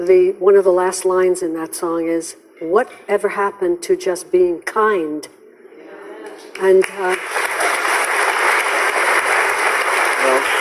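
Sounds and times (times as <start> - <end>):
speech: 0.0 - 5.4, 6.3 - 7.5
crowd applause for a woman: 6.8 - 10.5.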